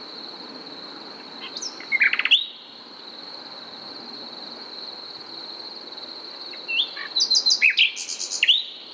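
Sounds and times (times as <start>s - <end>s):
Common nightingale singing, Luscinia megarhynchos: 1.4s - 2.7s, 6.5s - 8.9s.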